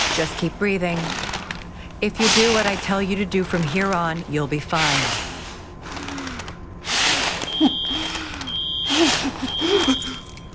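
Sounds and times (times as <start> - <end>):
speech: 0.2 - 1.3, 2.0 - 5.2
high-pitched fire alarm beeping: 7.4 - 10.5.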